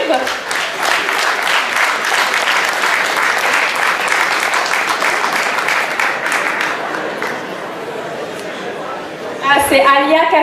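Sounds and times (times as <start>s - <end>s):
audience applause: 0.0s - 8.0s
speech: 9.7s - 10.4s.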